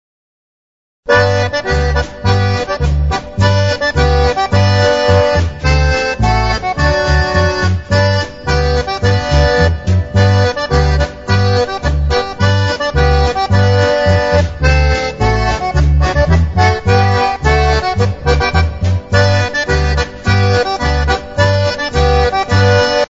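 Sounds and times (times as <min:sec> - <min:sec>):
polka music: 0:01.1 - 0:23.0.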